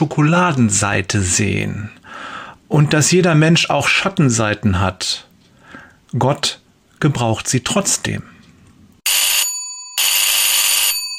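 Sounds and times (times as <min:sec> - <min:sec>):
speech: 0:00.0 - 0:05.3, 0:06.1 - 0:08.4
telephone ringing loudly: 0:09.0 - 0:11.1.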